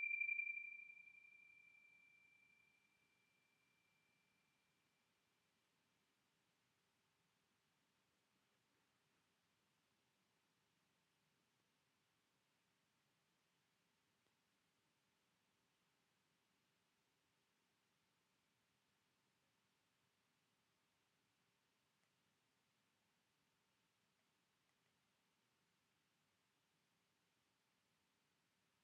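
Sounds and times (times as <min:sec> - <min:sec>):
bells: 0:00.0 - 0:02.1.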